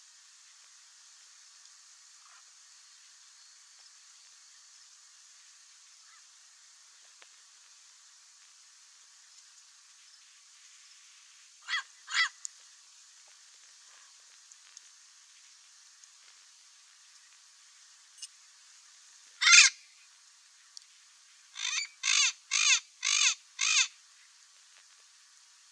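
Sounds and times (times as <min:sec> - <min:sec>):
Amazon parrot giving harsh squawks: 0:11.7 - 0:12.3, 0:19.4 - 0:19.8, 0:21.6 - 0:23.9.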